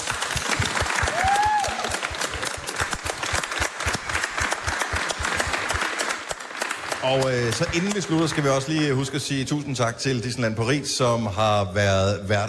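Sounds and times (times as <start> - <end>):
audience applause: 0.0 - 9.8
speech: 7.0 - 12.4.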